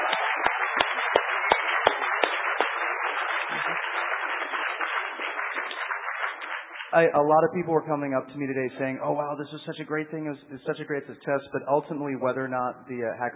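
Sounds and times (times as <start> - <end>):
audience applause: 0.0 - 7.1
speech: 6.9 - 13.3.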